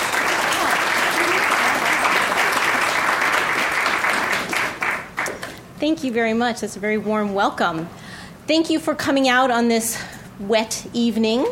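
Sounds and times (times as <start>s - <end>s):
audience applause welcoming a lecturer to an evening course talk: 0.0s - 5.5s
speech: 5.8s - 11.4s.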